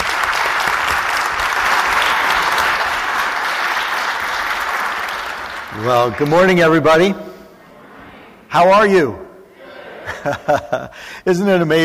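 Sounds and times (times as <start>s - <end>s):
audience applause: 0.0s - 6.6s
speech: 5.8s - 7.2s, 8.5s - 9.2s, 10.2s - 11.8s
laughter: 9.5s - 11.2s.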